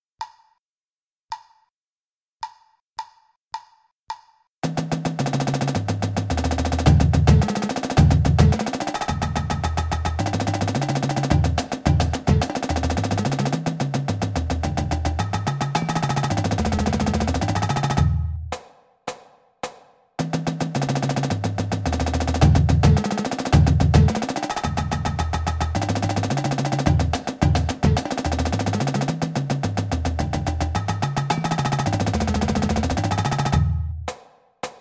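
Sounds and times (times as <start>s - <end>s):
duple drum rolls: 4.6s - 18.3s, 20.2s - 33.8s.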